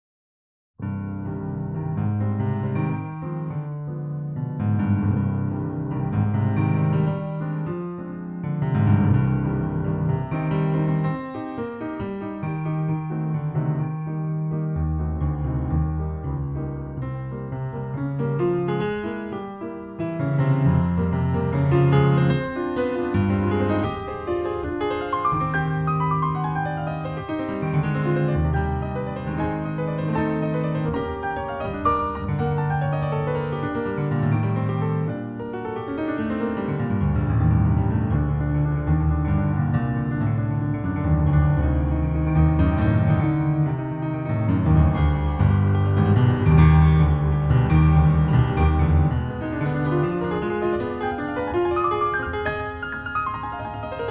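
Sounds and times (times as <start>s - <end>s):
piano sonata first movement: 0.8s - 54.0s.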